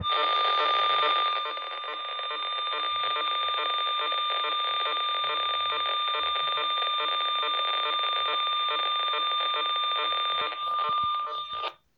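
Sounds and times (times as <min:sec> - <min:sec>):
PMR radio signal: 0:00.0 - 0:11.8.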